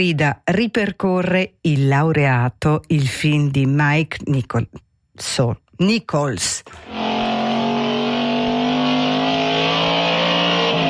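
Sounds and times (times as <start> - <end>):
speech: 0.0 - 7.1
1960s Alfa Romeo Duetto sports car engine revving: 6.7 - 10.8.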